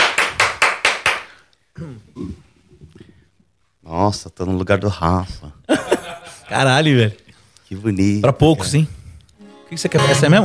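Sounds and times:
hand clapping applause: 0.0 - 1.4
speech: 4.0 - 5.6, 6.5 - 9.0, 9.7 - 10.4
laughter: 5.7 - 6.7.

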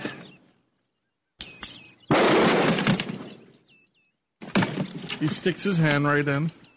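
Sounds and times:
gunshot blasting a lock off: 2.1 - 3.3
speech: 5.2 - 6.6.

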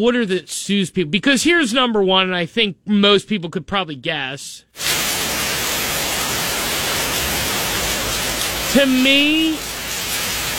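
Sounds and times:
speech: 0.0 - 4.9, 8.7 - 9.7
pounding heavy rainstorm: 4.8 - 10.5.

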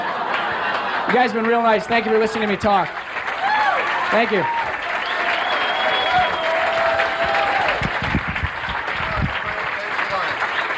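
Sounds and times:
laughter: 0.0 - 2.6
audience applause: 0.0 - 10.7
speech: 1.1 - 3.0, 4.1 - 4.6
high whistle: 5.0 - 6.6.

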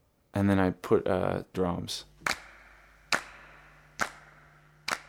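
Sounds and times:
speech: 0.4 - 2.1
hand claps recorded in a home studio in a garage: 2.2 - 5.0.

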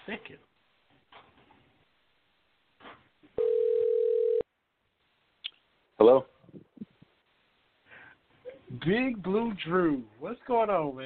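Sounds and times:
speech: 0.1 - 0.5, 6.0 - 6.3, 8.8 - 11.0
phone line electronic ringback tone: 3.4 - 4.4.

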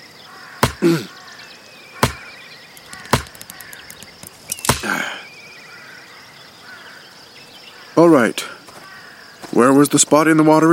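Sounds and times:
insects chirping: 0.0 - 10.7
chopping a tree branch: 0.6 - 1.0, 2.0 - 5.0
speech: 0.8 - 1.1, 8.0 - 8.5, 9.8 - 10.7.

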